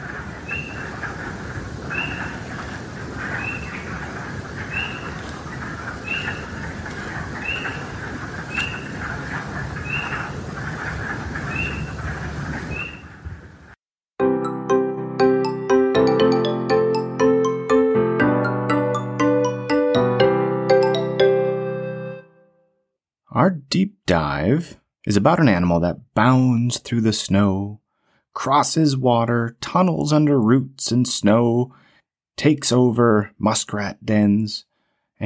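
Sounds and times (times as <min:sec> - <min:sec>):
spring peepers peeping in a vernal pool: 0:00.0 - 0:13.7
melodic music: 0:14.2 - 0:22.6
speech: 0:24.5 - 0:27.8, 0:28.4 - 0:31.8, 0:32.4 - 0:35.2.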